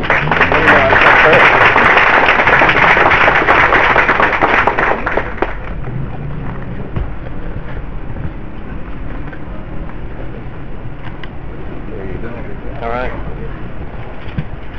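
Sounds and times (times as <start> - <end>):
audience applause: 0.0 - 5.7.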